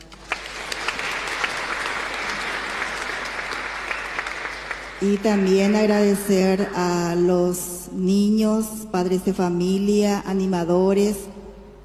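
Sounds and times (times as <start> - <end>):
audience applause: 0.0 - 6.0
speech: 5.0 - 11.3.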